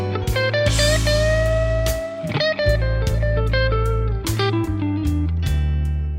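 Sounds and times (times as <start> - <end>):
guitar lick: 0.1 - 6.0.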